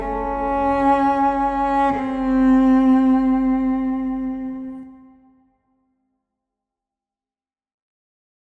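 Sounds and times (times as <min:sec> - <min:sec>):
Jewish violin music: 0:00.0 - 0:05.6.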